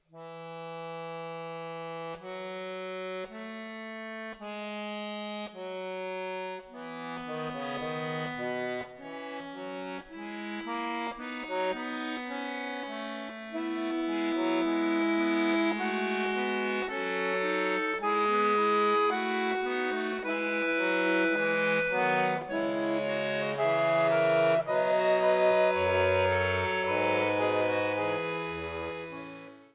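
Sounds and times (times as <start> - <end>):
fugue in E major on accordion: 0.0 - 29.7.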